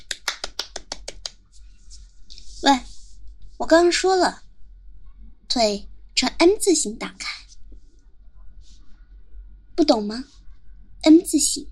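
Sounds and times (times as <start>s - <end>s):
hand claps: 0.0s - 1.4s
speech: 2.6s - 2.9s, 3.6s - 4.4s, 5.5s - 7.3s, 9.8s - 10.4s, 11.0s - 11.6s.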